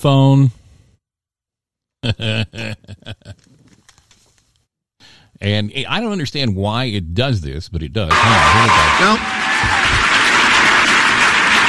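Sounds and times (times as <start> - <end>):
speech: 0.0 - 0.6, 2.0 - 3.5, 5.4 - 9.8
audience applause: 8.1 - 11.6.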